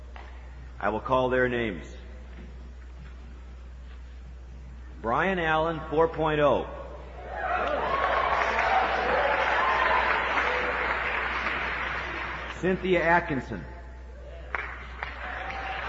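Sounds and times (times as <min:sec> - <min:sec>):
speech: 0:00.8 - 0:02.0, 0:05.0 - 0:06.8, 0:12.6 - 0:13.7
crowd applauding: 0:07.3 - 0:12.6, 0:14.4 - 0:15.8.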